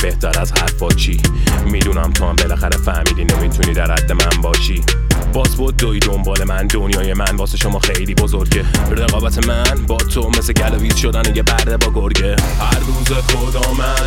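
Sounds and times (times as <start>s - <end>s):
drill rap vocals: 0.0s - 14.0s.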